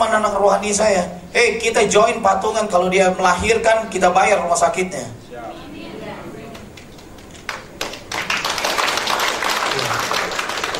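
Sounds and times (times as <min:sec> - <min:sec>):
speech: 0:00.1 - 0:05.6
crowd applause: 0:06.5 - 0:10.7.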